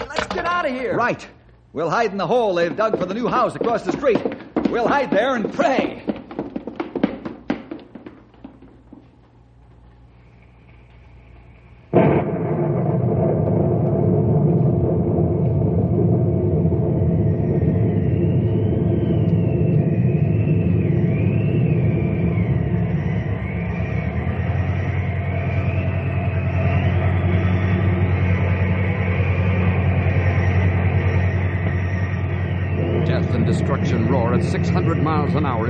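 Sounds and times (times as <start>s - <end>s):
speech: 0.6s - 6.1s
sharp taps: 2.6s - 9.1s
tornado roar: 11.9s - 35.6s
thin wavering whistle: 16.0s - 35.6s.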